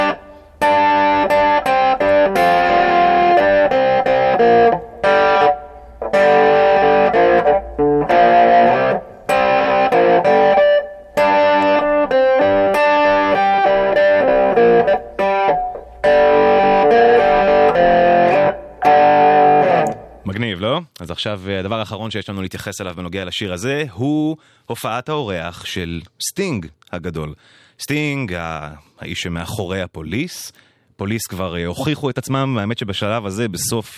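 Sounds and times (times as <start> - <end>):
distorted electric guitar riff played back slowed down: 0.0 - 20.3
speech: 21.2 - 33.9.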